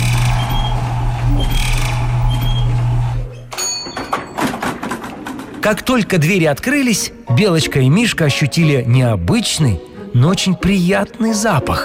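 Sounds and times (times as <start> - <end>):
elevator smoothly moving upward: 0.0 - 6.1
speech: 5.6 - 11.8.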